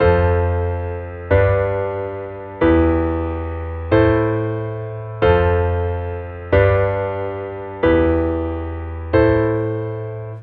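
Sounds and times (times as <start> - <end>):
piano: 0.0 - 10.4.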